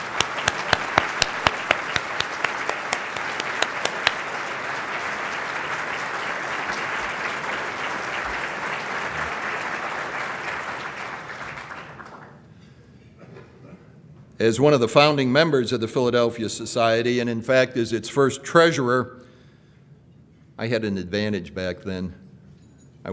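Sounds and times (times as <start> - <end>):
audience applause: 0.0 - 12.4
speech: 14.4 - 19.2, 20.6 - 22.2.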